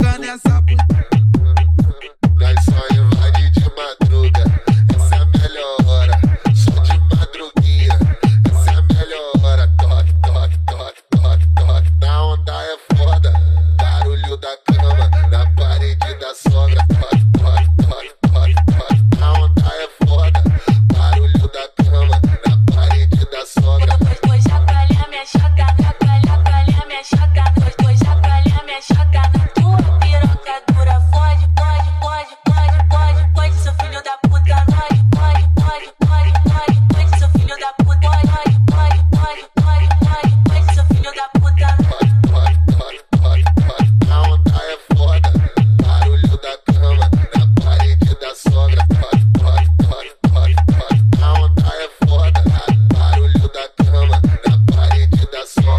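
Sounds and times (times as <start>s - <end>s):
funk bass: 0.0s - 12.1s, 12.9s - 55.7s.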